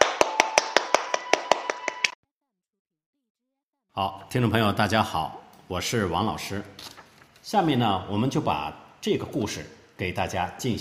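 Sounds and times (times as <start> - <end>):
applause: 0.0 - 2.2
speech: 4.0 - 10.7.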